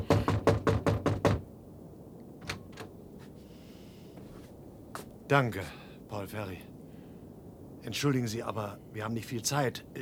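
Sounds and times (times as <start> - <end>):
pounding knocks on a wooden hut door: 0.0 - 1.5
speech: 5.3 - 6.7, 7.9 - 10.0.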